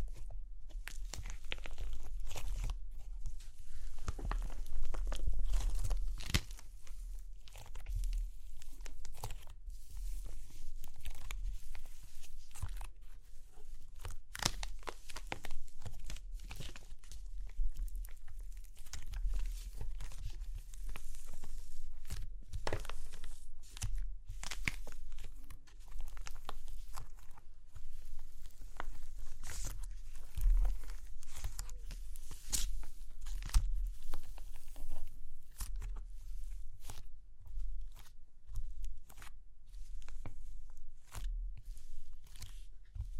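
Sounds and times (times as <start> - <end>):
crunchy clay cracking and crumbling: 0.0 - 43.1.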